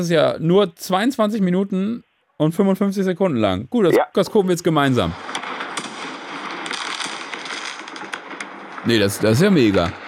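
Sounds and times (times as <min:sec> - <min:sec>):
speech: 0:00.0 - 0:05.3, 0:08.8 - 0:10.0
fireworks exploding: 0:05.2 - 0:08.9.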